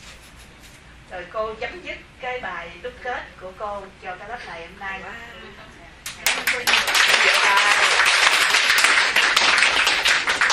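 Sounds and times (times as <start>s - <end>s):
speech: 1.1s - 7.6s
applause in a Buddhist study class: 6.1s - 10.5s.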